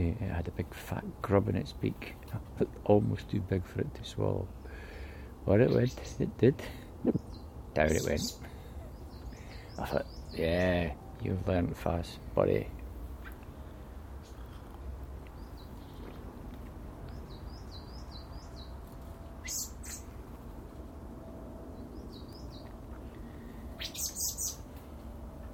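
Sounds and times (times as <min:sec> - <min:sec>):
speech: 0:00.1 - 0:08.5, 0:09.8 - 0:12.8
blue tits chirping: 0:04.2 - 0:20.2, 0:21.7 - 0:24.8.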